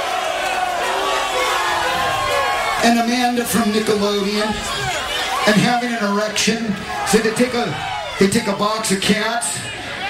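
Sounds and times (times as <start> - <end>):
audience cheering and shouting: 0.0 - 10.0
speech: 2.8 - 9.8.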